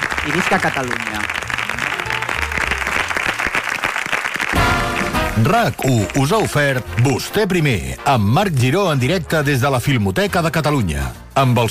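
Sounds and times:
audience applause: 0:00.0 - 0:07.6
speech: 0:00.2 - 0:01.4, 0:05.4 - 0:11.6.

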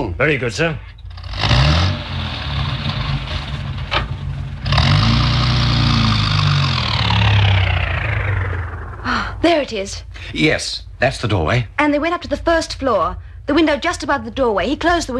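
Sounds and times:
car engine running as car reverses: 0:00.0 - 0:15.1
speech: 0:00.1 - 0:00.9, 0:09.4 - 0:15.1.

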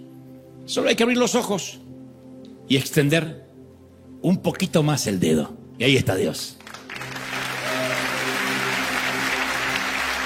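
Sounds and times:
speech: 0:00.7 - 0:01.9, 0:02.7 - 0:03.4, 0:04.2 - 0:06.8
applause: 0:06.6 - 0:10.2.

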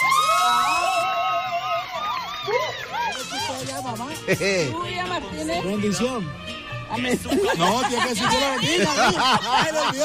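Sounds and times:
group cheering and shouting: 0:00.0 - 0:03.4
crowd noise: 0:00.0 - 0:10.0
speech: 0:03.8 - 0:10.0
laughter: 0:07.0 - 0:10.0.

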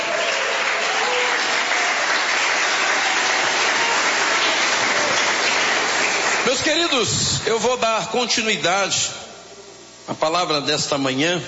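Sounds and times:
audience clapping hands: 0:00.0 - 0:07.1
speech: 0:06.7 - 0:09.2, 0:10.1 - 0:11.4.

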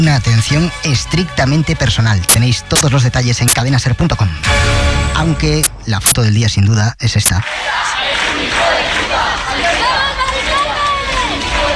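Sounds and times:
speech: 0:00.0 - 0:09.9
neighbors and activists shouting during an eviction: 0:07.4 - 0:11.7.

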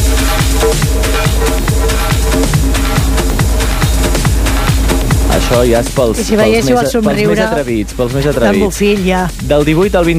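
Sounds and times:
electronic dance music: 0:00.0 - 0:10.1
speech: 0:05.5 - 0:10.1.

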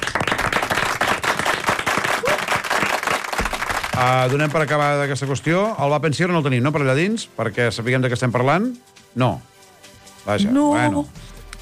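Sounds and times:
audience applause: 0:00.0 - 0:05.5
speech: 0:04.0 - 0:09.5, 0:10.2 - 0:11.2.

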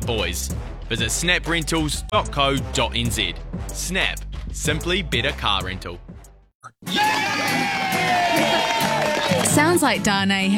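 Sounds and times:
speech: 0:00.0 - 0:06.1, 0:06.8 - 0:08.7, 0:09.3 - 0:10.5
crowd cheering and hooraying: 0:06.8 - 0:10.0.

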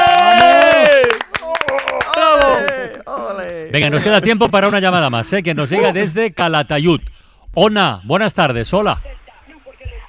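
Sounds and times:
voices whooping and cheering: 0:00.0 - 0:03.0
small group clapping: 0:00.0 - 0:03.1
speech: 0:03.7 - 0:09.2.

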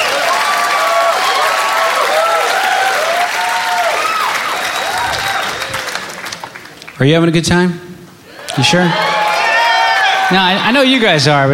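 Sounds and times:
whoops and cheering: 0:00.0 - 0:06.2, 0:08.3 - 0:10.7
audience clapping: 0:00.0 - 0:07.1, 0:08.4 - 0:11.0
speech: 0:07.0 - 0:07.8, 0:08.6 - 0:09.0, 0:10.3 - 0:11.5.

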